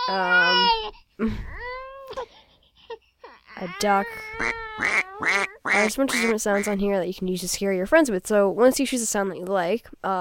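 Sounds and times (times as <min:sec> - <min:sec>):
baby crying and whimpering: 0:00.0 - 0:06.7
speech: 0:00.1 - 0:01.6, 0:03.6 - 0:10.1.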